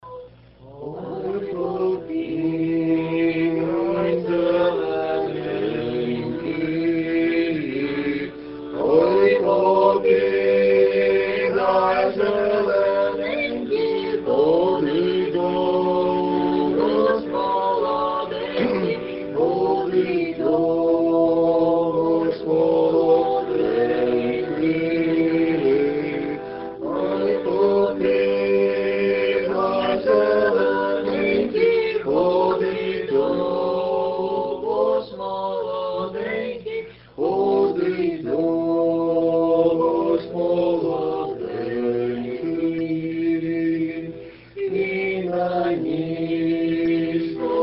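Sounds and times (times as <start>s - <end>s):
Ukrainian song: 0.2s - 47.6s.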